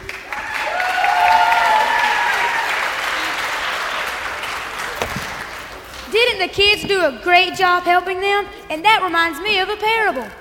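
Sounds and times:
audience applause: 0.0 - 5.6
cheers and whoops: 0.2 - 3.1
speech: 6.5 - 10.3.

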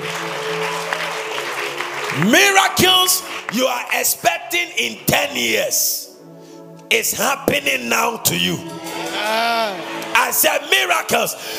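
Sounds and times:
audience clapping: 0.0 - 4.2
speech: 2.2 - 6.0, 6.9 - 11.5.

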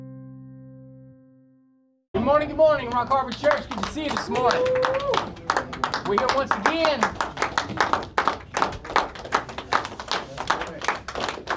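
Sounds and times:
speech: 2.3 - 5.5, 6.1 - 7.3
audience clapping hands: 2.6 - 11.5.

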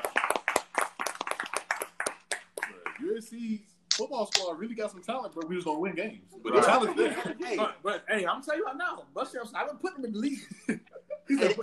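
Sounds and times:
hand clapping: 0.0 - 3.2, 3.9 - 4.5
speech: 3.2 - 11.6.

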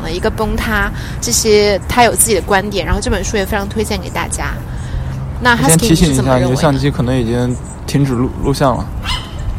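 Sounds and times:
speech: 0.1 - 4.8, 5.4 - 9.0
puppy whimpering and barking: 9.0 - 9.5.

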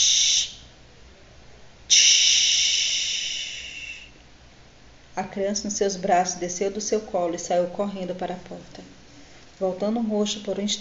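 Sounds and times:
voice imitating hairs landing on floor tiles with hissing tsh sounds: 0.0 - 0.6, 1.9 - 4.2
speech: 5.2 - 9.0, 9.6 - 10.7.

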